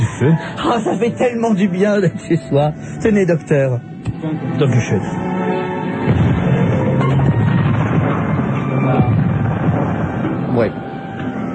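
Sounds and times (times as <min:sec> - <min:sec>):
laughter: 0:00.0 - 0:01.7
speech: 0:00.2 - 0:05.3, 0:10.6 - 0:10.8
explosion of a delayed-action lighter: 0:06.0 - 0:11.5.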